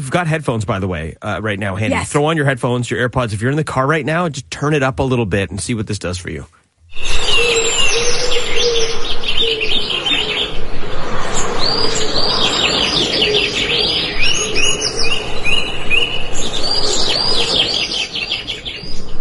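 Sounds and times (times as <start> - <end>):
speech: 0.0 - 7.1
many birds chirping and tweeting in a chorus: 6.9 - 19.1.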